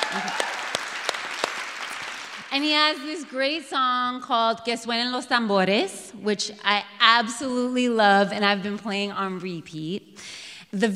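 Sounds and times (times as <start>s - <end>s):
crowd clapping: 0.0s - 3.0s
speech: 2.5s - 10.9s.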